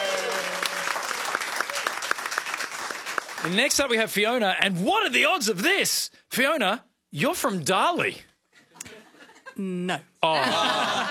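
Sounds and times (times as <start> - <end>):
audience applause: 0.0 - 4.0
speech: 3.4 - 8.3, 9.6 - 11.0
laughter: 8.6 - 9.6, 10.2 - 11.0.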